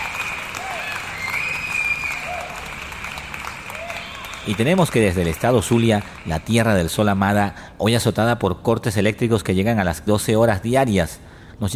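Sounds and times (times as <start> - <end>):
applause: 0.0 - 7.0
speech: 4.4 - 11.7.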